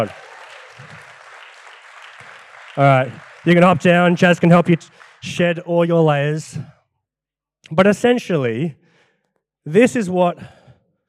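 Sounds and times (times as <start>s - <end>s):
speech: 0.0s - 0.2s, 2.8s - 6.7s, 7.7s - 8.8s, 9.6s - 10.6s
crowd clapping: 0.0s - 6.4s.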